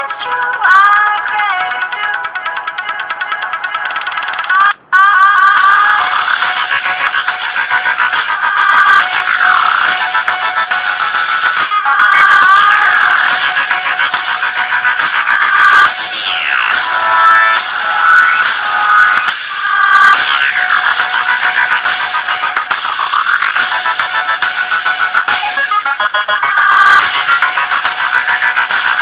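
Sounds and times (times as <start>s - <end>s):
dubstep music: 0.0s - 29.0s.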